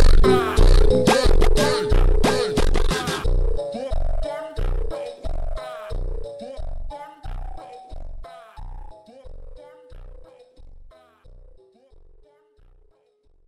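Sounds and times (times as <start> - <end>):
super slowed phonk music: 0.0 - 10.0.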